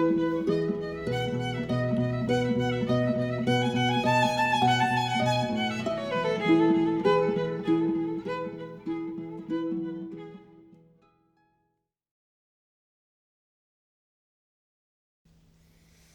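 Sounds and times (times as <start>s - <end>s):
violin piece: 0.0s - 10.9s.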